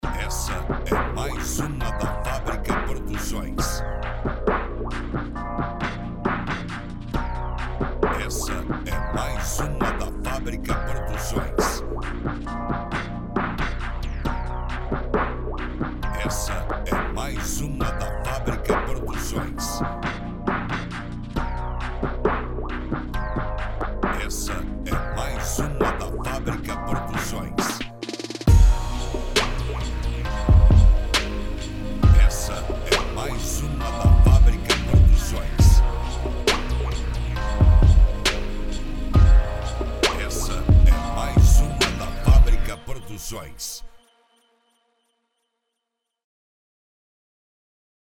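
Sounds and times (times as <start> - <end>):
trap beat: 0.0 - 43.7.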